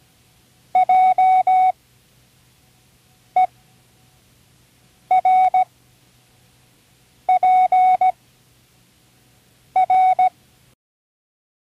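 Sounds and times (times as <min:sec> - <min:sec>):
morse code of random letters: 0:00.8 - 0:01.7, 0:05.1 - 0:05.7, 0:07.3 - 0:08.1, 0:09.8 - 0:10.3.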